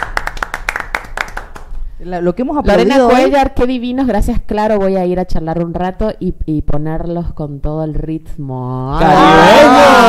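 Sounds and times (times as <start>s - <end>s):
hand clapping: 0.0s - 1.8s
speech: 2.0s - 10.0s.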